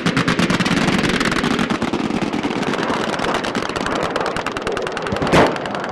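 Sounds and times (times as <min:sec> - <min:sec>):
anti-aircraft gunfire: 0:00.0 - 0:05.9.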